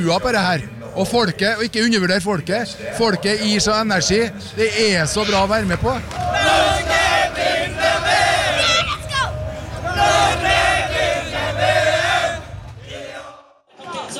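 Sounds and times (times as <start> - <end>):
speech: 0.0 - 6.6
crowd of fans cheering: 4.9 - 14.1.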